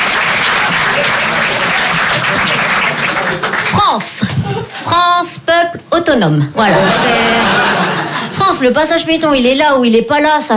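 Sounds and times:
audience applause: 0.0s - 4.0s
speech: 3.9s - 7.6s, 8.6s - 10.5s
laughter: 4.2s - 4.8s, 6.6s - 8.4s.

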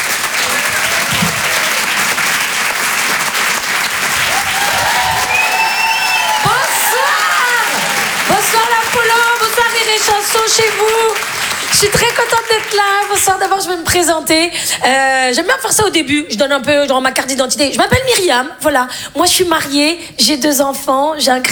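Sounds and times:
comedy club audience applauding a comedian: 0.0s - 14.1s
cheers and whoops: 0.2s - 2.9s, 3.8s - 11.5s
speech: 10.0s - 21.4s.

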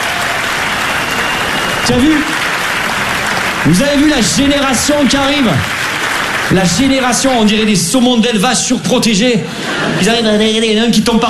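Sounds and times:
audience applause: 0.0s - 8.3s
speech: 1.9s - 2.4s, 3.6s - 5.8s, 6.5s - 11.2s.

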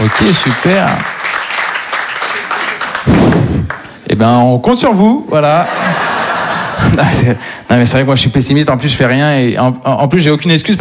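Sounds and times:
speech: 0.0s - 1.2s, 4.1s - 6.0s, 6.8s - 10.7s
audience applause at an evening show: 0.0s - 3.9s
laughter: 5.6s - 7.4s.

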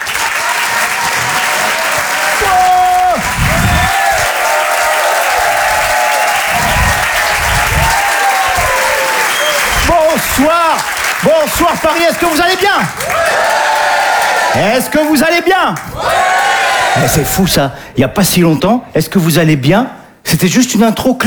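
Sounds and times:
comedy club audience applause in Paris greeting a comedian: 0.0s - 15.0s, 15.8s - 17.2s
speech: 10.4s - 13.4s, 14.5s - 16.2s, 17.0s - 21.2s.

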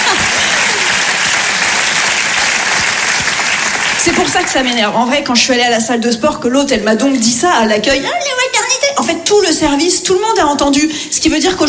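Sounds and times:
crowd clapping: 0.0s - 4.8s
speech: 4.1s - 11.6s.

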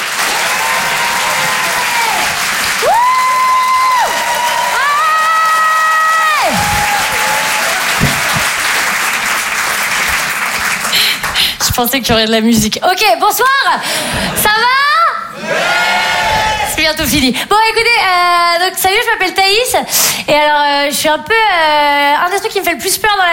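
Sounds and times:
comedy show audience clapping for a comedian: 0.0s - 12.0s
comedy show audience whoops and cheering shouts: 0.2s - 8.1s, 15.0s - 16.8s
speech: 11.8s - 14.9s, 16.9s - 23.3s.

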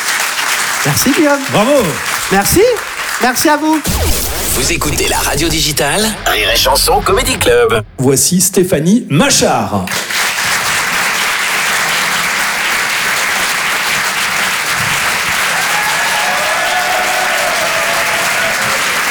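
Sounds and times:
audience applauding after a comedy set: 0.0s - 3.9s, 9.9s - 19.0s
speech: 0.8s - 10.2s.

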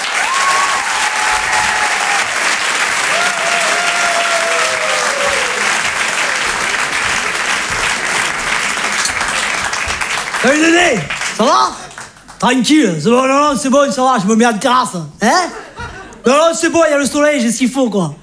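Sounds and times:
loud sustained audience applause from a large crowd: 0.0s - 12.5s
speech: 10.4s - 11.8s, 12.4s - 15.6s, 16.2s - 18.2s
laughter: 15.2s - 16.6s.

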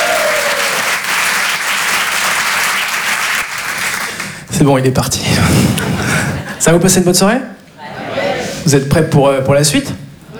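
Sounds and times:
audience applauding the presenter of a live show: 0.0s - 4.5s
speech: 4.6s - 7.6s, 8.6s - 10.0s.

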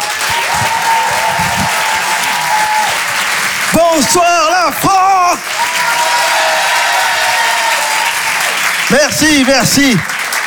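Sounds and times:
audience applause at the Apollo Théâtre in Paris: 0.0s - 10.4s
speech: 3.9s - 5.9s, 8.9s - 10.1s.

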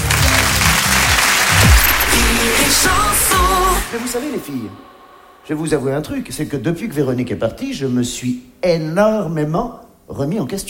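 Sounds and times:
audience applause: 0.0s - 4.5s
speech: 3.9s - 4.9s, 5.5s - 10.6s.

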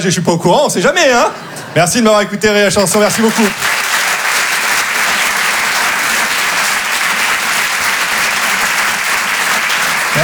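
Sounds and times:
speech: 0.0s - 3.8s
audience applause: 2.8s - 10.2s.

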